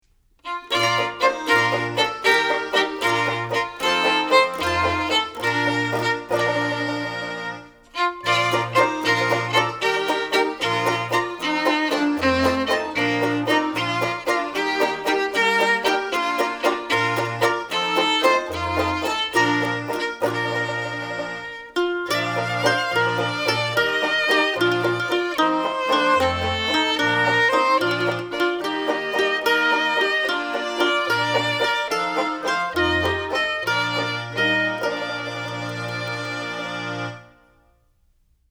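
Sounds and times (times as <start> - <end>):
instrumental music: 0.0 - 38.1.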